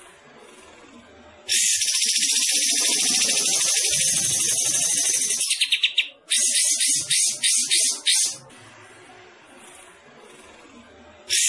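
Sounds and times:
bulbul high chatter and buzzing bursts: 0:01.5 - 0:08.4.

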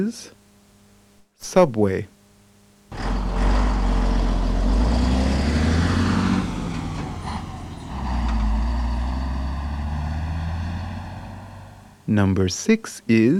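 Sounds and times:
speech: 0:00.0 - 0:00.4, 0:01.4 - 0:02.2, 0:12.1 - 0:13.3
truck engine: 0:02.9 - 0:12.1.

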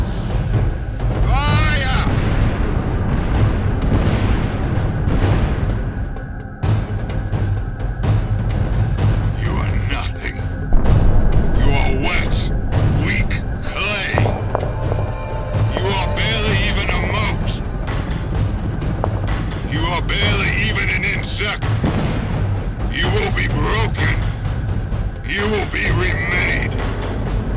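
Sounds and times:
constant low rumble: 0:00.0 - 0:27.5
14th Battery cannons firing: 0:02.0 - 0:06.1, 0:10.7 - 0:24.2
indistinct voices: 0:09.3 - 0:21.7, 0:22.8 - 0:24.4, 0:25.2 - 0:26.9.

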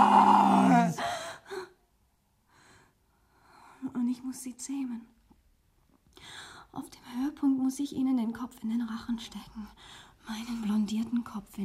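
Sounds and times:
man imitating a lion's roar: 0:00.0 - 0:01.0
speech: 0:04.2 - 0:05.2, 0:06.8 - 0:11.6.

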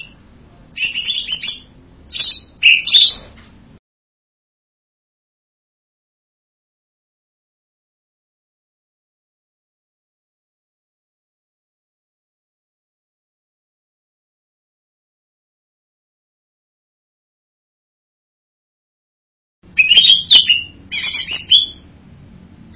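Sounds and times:
bird buzzy whistled song: 0:00.8 - 0:03.3, 0:19.7 - 0:21.9.

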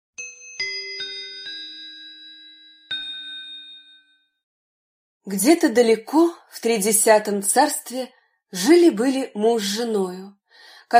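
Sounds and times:
small bell ringing: 0:00.2 - 0:04.4
speech: 0:05.2 - 0:10.9.

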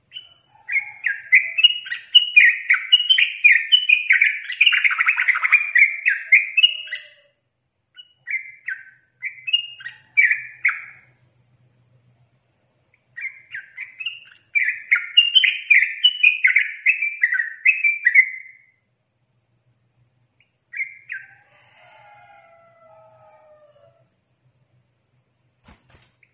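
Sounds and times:
yellow-vented bulbul singing: 0:00.0 - 0:11.2, 0:12.9 - 0:18.8, 0:20.4 - 0:21.4.

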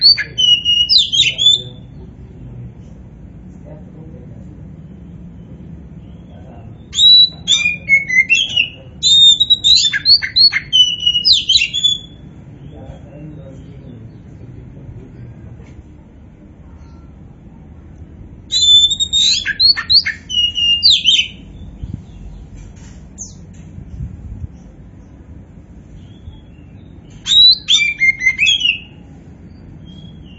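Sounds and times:
Oriental magpie-robin whistles: 0:00.0 - 0:01.8, 0:06.9 - 0:12.2, 0:18.5 - 0:21.5, 0:27.1 - 0:29.0
low hum: 0:00.0 - 0:30.3.

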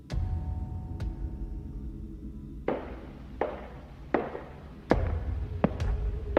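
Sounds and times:
low rumbling background: 0:00.0 - 0:06.3
footsteps sound effect: 0:02.7 - 0:06.3.

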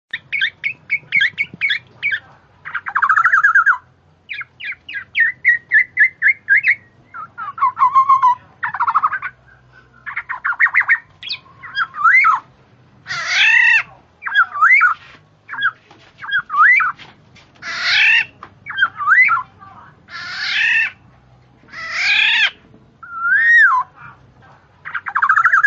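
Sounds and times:
bird chirping calls: 0:00.1 - 0:24.2, 0:24.8 - 0:25.6.

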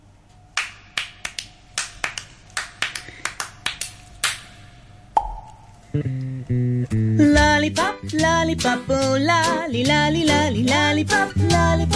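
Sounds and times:
crisp hand claps opening a music track: 0:00.6 - 0:04.6
speech: 0:05.9 - 0:07.0, 0:07.6 - 0:11.9.

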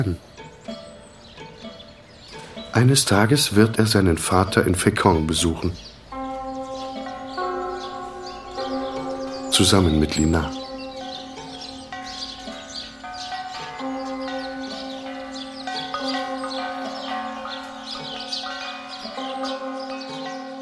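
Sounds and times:
speech: 0:00.0 - 0:00.3, 0:02.8 - 0:05.9, 0:09.6 - 0:10.6
birds chirping: 0:00.0 - 0:20.6
church bells ringing: 0:00.0 - 0:20.6.

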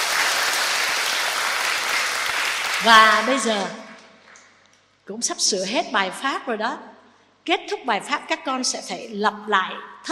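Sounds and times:
audience applause at a Buddhist dharma talk: 0:00.0 - 0:03.7
speech: 0:02.8 - 0:03.8, 0:05.1 - 0:10.0.

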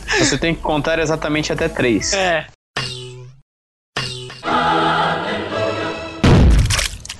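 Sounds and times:
speech: 0:00.2 - 0:02.5
choir singing sound effect: 0:04.5 - 0:06.2
rumbling blast of the Holy Hand Grenade sound effect: 0:06.2 - 0:06.7.

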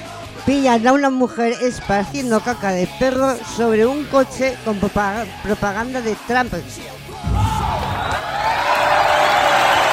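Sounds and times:
speech: 0:00.4 - 0:07.4
applause: 0:08.0 - 0:09.9.

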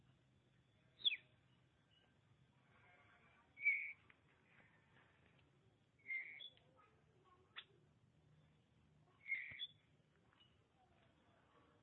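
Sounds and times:
oriental magpie-robin whistling song: 0:01.0 - 0:01.2, 0:03.6 - 0:04.0, 0:06.1 - 0:06.5, 0:09.2 - 0:09.8.

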